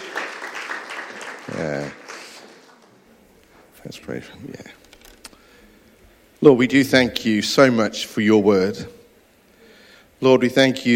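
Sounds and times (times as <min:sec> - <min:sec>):
church congregation clapping: 0:00.0 - 0:03.1
speech: 0:01.5 - 0:02.0, 0:03.8 - 0:04.8, 0:06.4 - 0:09.0, 0:10.2 - 0:10.9.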